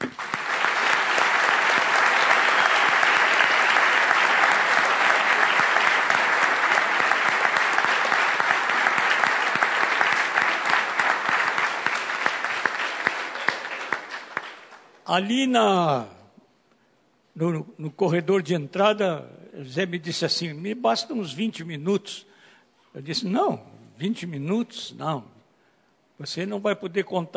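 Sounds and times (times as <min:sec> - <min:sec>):
audience applause: 0:00.0 - 0:14.9
speech: 0:15.1 - 0:16.1, 0:17.4 - 0:22.3, 0:22.9 - 0:25.4, 0:26.2 - 0:27.3.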